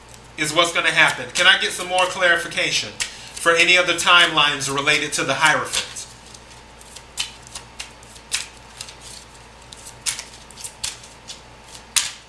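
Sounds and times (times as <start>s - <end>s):
tarot cards being shuffled: 0.0s - 2.2s, 3.0s - 12.2s
speech: 0.4s - 5.9s.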